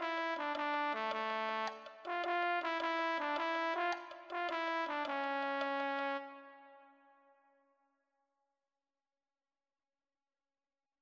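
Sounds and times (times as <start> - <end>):
tenor saxophone: 0.0 - 7.2.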